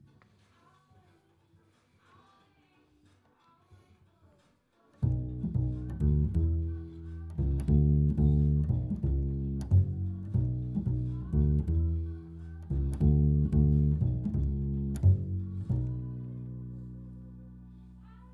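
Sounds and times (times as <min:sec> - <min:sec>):
bass recorded through a microphone: 0:05.0 - 0:18.3.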